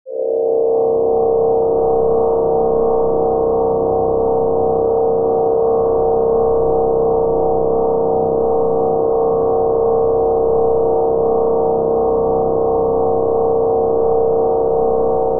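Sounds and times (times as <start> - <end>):
drone: 0.1 - 15.3.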